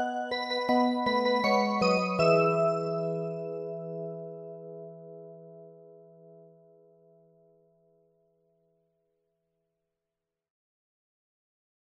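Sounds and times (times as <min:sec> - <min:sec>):
instrumental music: 0:00.0 - 0:07.1.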